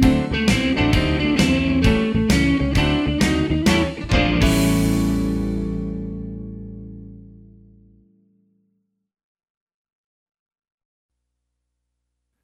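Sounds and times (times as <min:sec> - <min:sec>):
blues music: 0:00.0 - 0:08.0.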